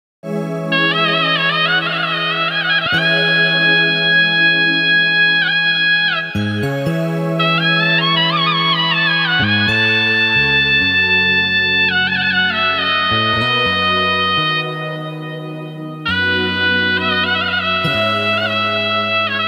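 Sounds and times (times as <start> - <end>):
piano on midi keyboard: 0.2 - 19.4.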